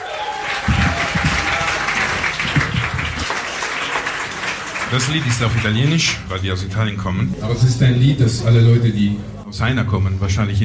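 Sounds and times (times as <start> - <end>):
applause: 0.0 - 6.2
speech: 4.9 - 10.6.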